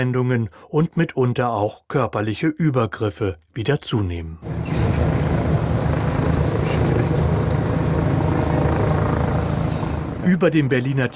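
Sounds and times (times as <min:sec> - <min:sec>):
speech: 0:00.0 - 0:04.8, 0:10.3 - 0:11.1
police helicopter rotor droning, circling over the Tiergarten park in Berlin: 0:04.4 - 0:11.1.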